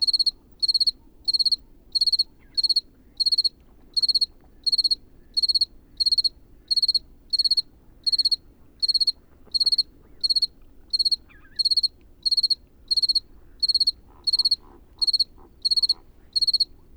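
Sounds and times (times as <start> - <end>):
cricket chirping: 0.0 - 16.9
faint bird calls: 9.2 - 11.9, 13.2 - 16.9.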